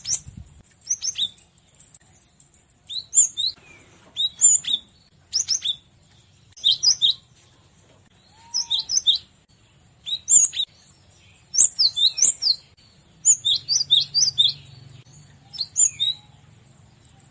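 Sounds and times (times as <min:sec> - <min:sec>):
cinereous tit calling in rapid high slurred chirps: 0:00.0 - 0:02.3, 0:02.9 - 0:03.6, 0:04.2 - 0:05.9, 0:06.6 - 0:07.3, 0:08.3 - 0:09.3, 0:10.0 - 0:17.2.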